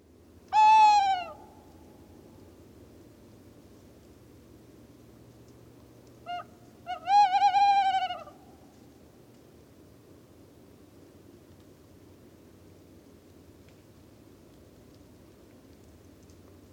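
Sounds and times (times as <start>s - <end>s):
faint hum: 0.0s - 16.7s
tawny owl hooting: 0.5s - 1.5s, 6.2s - 8.4s.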